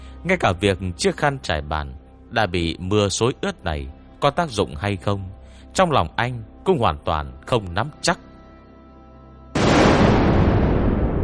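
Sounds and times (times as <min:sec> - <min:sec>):
speech: 0:00.2 - 0:08.3
thunder strike: 0:09.6 - 0:11.2.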